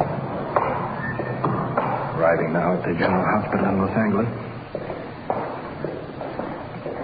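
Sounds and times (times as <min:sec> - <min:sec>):
footsteps climbing the stairs to the main reception of the General Hospital in Los Angeles: 0:00.0 - 0:07.0
speech: 0:02.2 - 0:04.8.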